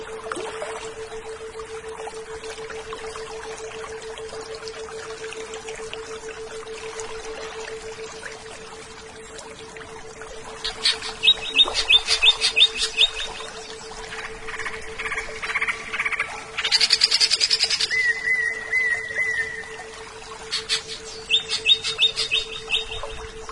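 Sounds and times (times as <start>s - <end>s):
leafbird singing varied phrases: 10.6s - 23.5s.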